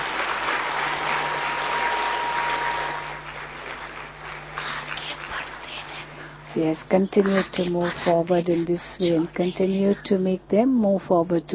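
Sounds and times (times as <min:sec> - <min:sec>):
audience clapping: 0:00.0 - 0:06.3
speech: 0:06.6 - 0:11.5.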